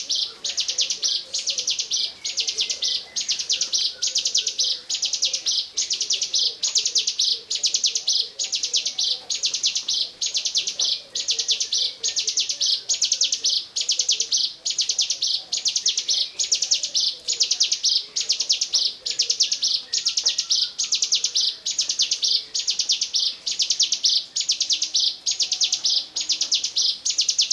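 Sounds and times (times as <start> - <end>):
bar-winged prinia singing: 0.0 - 27.5.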